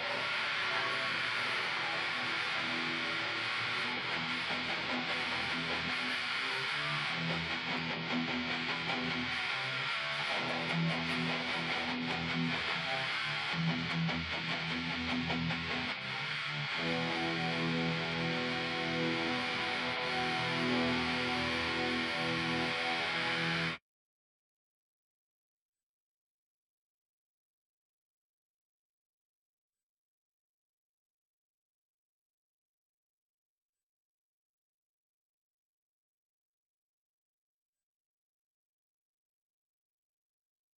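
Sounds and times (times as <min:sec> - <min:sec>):
guitar: 0:00.0 - 0:23.8.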